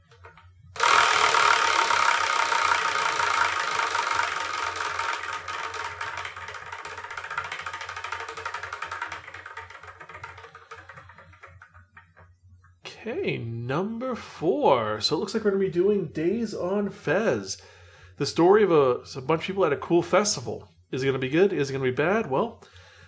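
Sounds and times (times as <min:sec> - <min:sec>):
prize wheel spinning with ratcheting tick: 0:00.8 - 0:12.3
speech: 0:13.1 - 0:22.8.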